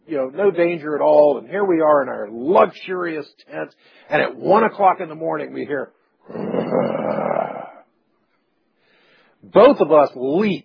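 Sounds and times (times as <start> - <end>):
speech: 0.1 - 7.3, 9.4 - 10.6
person imitating a lion roaring outside a tent at night: 6.3 - 7.9.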